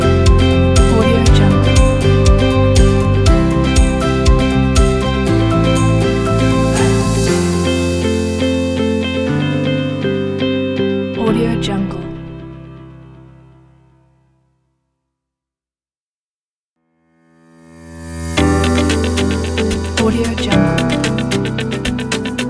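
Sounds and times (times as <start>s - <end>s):
corporate business motivational music: 0.0s - 11.7s, 18.4s - 22.4s.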